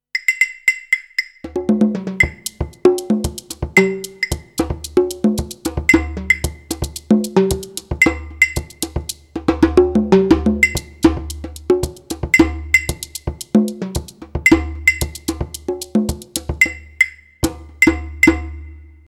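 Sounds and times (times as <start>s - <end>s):
Alesis DM Dock percussion kit: 0.2s - 19.0s.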